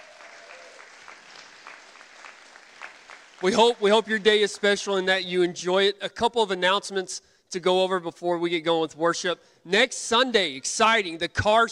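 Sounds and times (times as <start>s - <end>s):
audience clapping: 0.0s - 5.0s
speech: 3.4s - 11.7s.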